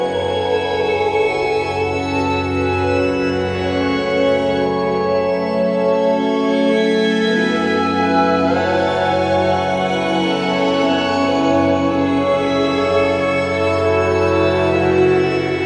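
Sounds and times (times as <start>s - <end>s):
string quintet playing: 0.0s - 15.6s.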